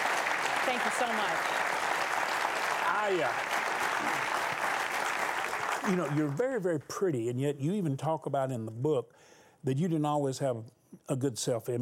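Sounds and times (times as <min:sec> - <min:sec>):
TV talk show studio audience applause welcoming a guest: 0:00.0 - 0:06.8
speech: 0:00.7 - 0:01.9, 0:02.9 - 0:04.6, 0:05.8 - 0:11.7.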